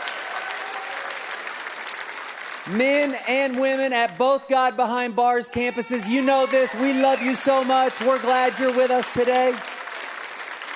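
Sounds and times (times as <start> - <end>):
large audience clapping and cheering: 0.0 - 4.8, 5.5 - 10.7
speech: 2.6 - 9.8.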